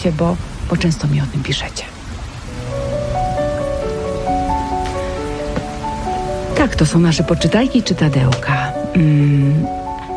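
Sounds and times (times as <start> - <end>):
speech: 0.0 - 2.0, 6.6 - 9.8
steady rain hissing: 0.0 - 10.1
slow gentle melody of sustained tones: 2.1 - 10.1.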